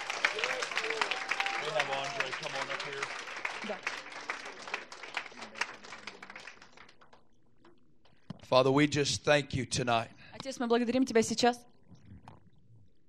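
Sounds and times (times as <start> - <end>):
congregation clapping during a church service: 0.0 - 7.2
speech: 1.8 - 4.1, 8.5 - 11.7.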